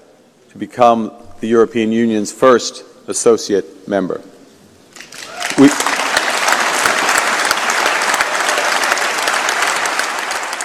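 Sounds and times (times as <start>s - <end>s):
speech: 0.6s - 4.3s, 5.6s - 5.9s
audience applause in parliament chamber: 5.0s - 10.6s.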